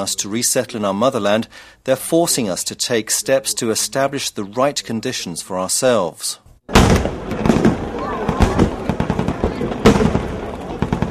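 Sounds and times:
speech: 0.0s - 7.2s
Russian naval guns firing at Black Sea Fleet celebration: 6.7s - 11.0s.

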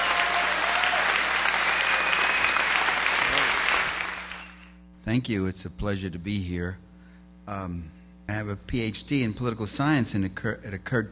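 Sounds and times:
rousing applause welcoming a speaker to the stage: 0.0s - 4.7s
speech: 5.1s - 6.9s, 7.5s - 11.1s.

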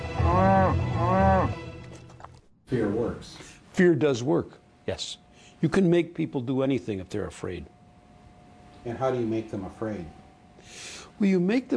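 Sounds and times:
cattle mooing: 0.0s - 1.7s
speech: 2.7s - 7.8s, 8.8s - 11.7s.

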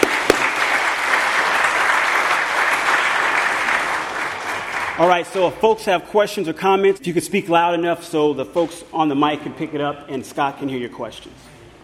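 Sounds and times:
audience applause: 0.0s - 5.0s
speech: 5.0s - 11.5s.

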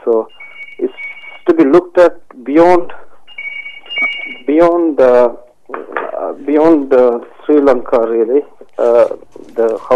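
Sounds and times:
speech: 0.1s - 0.5s, 1.6s - 3.0s, 4.5s - 5.4s, 6.3s - 9.9s
telephone ringing: 0.3s - 1.4s, 3.3s - 4.5s.

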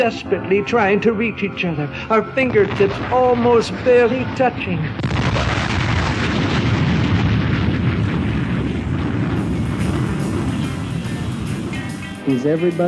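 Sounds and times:
speech: 0.0s - 5.3s, 12.3s - 12.8s
violent storm: 2.5s - 12.1s.

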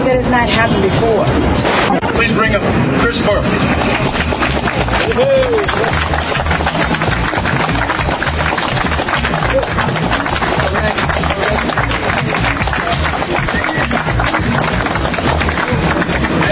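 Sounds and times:
speech: 0.1s - 1.5s, 2.4s - 4.3s, 5.1s - 6.7s
audience applause: 3.4s - 16.5s.

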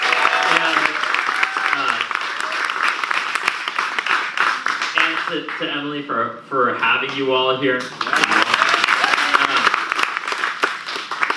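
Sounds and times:
audience round of applause: 0.0s - 5.6s, 7.9s - 11.3s
speech: 5.3s - 8.3s.

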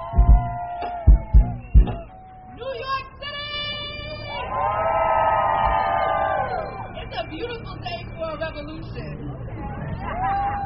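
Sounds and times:
crowd cheering and shouting: 0.0s - 7.1s, 9.6s - 10.6s.

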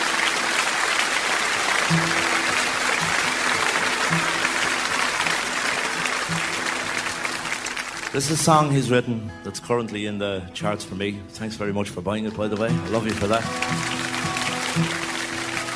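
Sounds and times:
large audience applauding for songwriter: 0.0s - 8.8s, 12.2s - 15.7s
speech: 8.1s - 13.9s.

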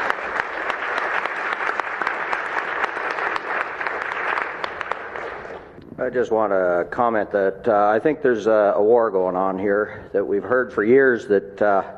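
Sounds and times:
conference audience applause at an organic farming event: 0.0s - 5.8s
speech: 6.0s - 11.9s.

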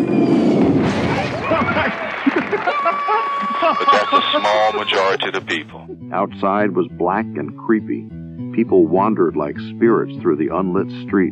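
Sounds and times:
loud rumbling explosion: 0.3s - 1.9s
laughter: 1.2s - 5.8s
speech: 3.0s - 11.3s.

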